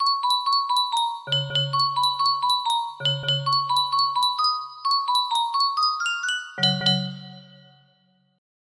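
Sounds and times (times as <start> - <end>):
music box jingle melody: 0.0 - 8.2.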